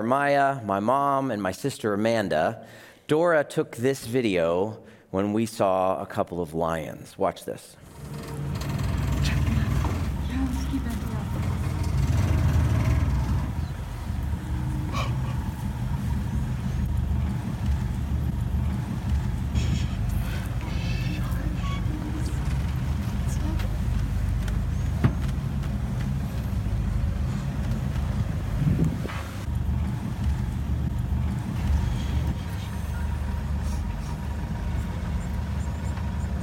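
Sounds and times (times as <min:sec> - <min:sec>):
speech: 0:00.0 - 0:08.4
Land Rover engine idling: 0:07.8 - 0:36.4.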